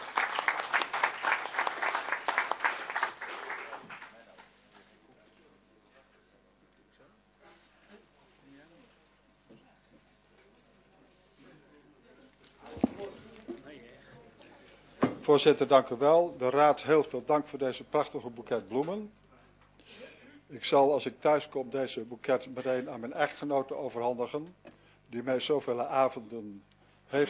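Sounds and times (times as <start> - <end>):
warm audience applause: 0.0 - 4.4
speech: 15.3 - 19.2, 20.5 - 27.2.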